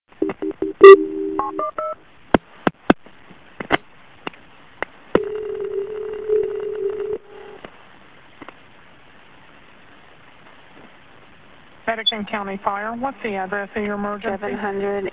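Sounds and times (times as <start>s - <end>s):
telephone dialing tones: 0.2s - 2.0s, 5.2s - 7.6s
speech: 12.0s - 15.1s.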